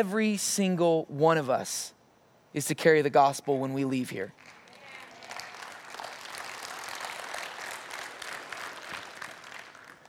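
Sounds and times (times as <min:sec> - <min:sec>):
speech: 0:00.0 - 0:02.0, 0:02.6 - 0:04.6
audience clapping: 0:04.4 - 0:10.0.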